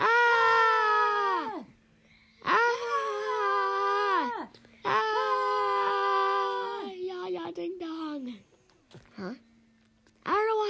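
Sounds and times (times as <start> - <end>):
several voices screaming together: 0.0 - 1.7, 2.4 - 7.0.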